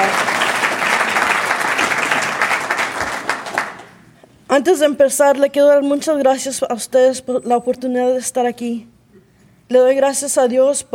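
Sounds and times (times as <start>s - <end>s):
audience clapping: 0.0s - 4.0s
speech: 4.6s - 8.9s, 9.7s - 10.9s.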